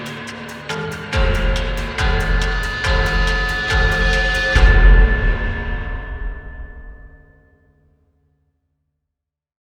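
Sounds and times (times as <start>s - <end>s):
suspense percussion: 0.0s - 7.3s.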